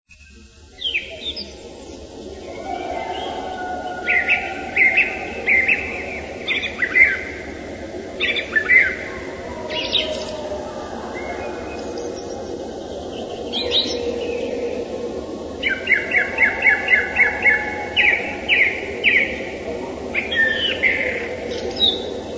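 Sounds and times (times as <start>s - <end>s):
song thrush singing varied whistled phrases: 0.2s - 22.3s.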